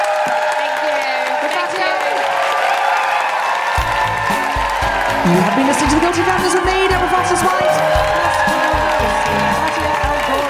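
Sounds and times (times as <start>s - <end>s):
crowd round of applause with cheers and whoops: 0.0s - 10.4s
speech: 5.2s - 9.9s.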